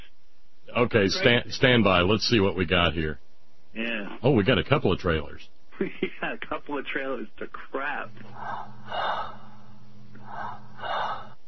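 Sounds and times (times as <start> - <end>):
low steady hum: 0.0 - 11.4
speech: 0.8 - 9.4
raspy wheezy breathing: 8.2 - 11.4.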